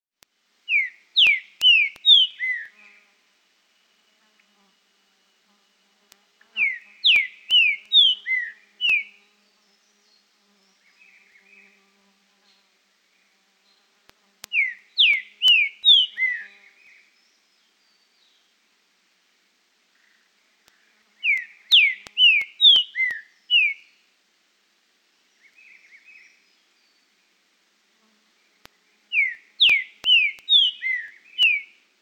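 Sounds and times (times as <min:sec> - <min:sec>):
trinca-ferro bird singing: 0:00.7 - 0:02.9, 0:06.4 - 0:13.9, 0:14.5 - 0:18.5, 0:19.9 - 0:24.0, 0:25.2 - 0:27.3, 0:28.4 - 0:31.8.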